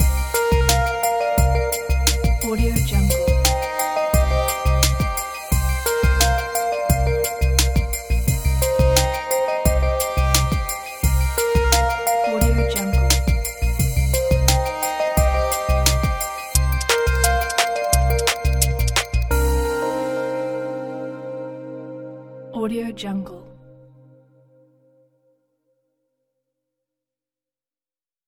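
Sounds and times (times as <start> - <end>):
drum and bass music: 0.0 - 21.6.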